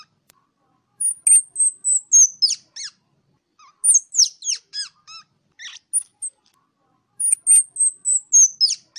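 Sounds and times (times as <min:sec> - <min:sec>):
ground squirrel calling to the flock: 0:01.0 - 0:03.0, 0:03.6 - 0:06.3, 0:07.2 - 0:08.9.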